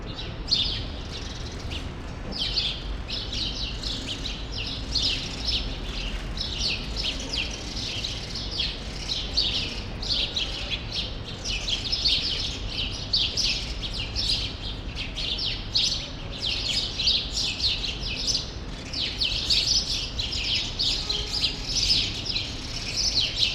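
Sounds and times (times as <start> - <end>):
flock of sparrows chattering in a grove in Brussels Belgium: 0.1 - 23.5.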